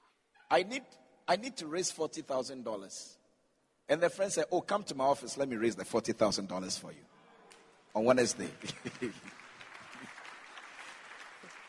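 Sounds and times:
speech: 0.5 - 3.2, 3.9 - 7.1, 7.9 - 9.4
audience clapping: 8.4 - 11.6.

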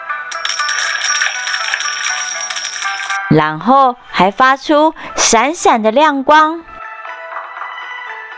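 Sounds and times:
coins clinking in a red pouch: 0.0 - 3.2
speech: 3.3 - 6.7.

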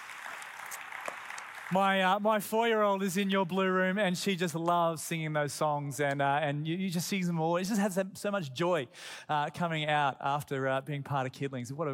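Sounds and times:
audience applause: 0.0 - 2.2
speech: 1.7 - 11.9.

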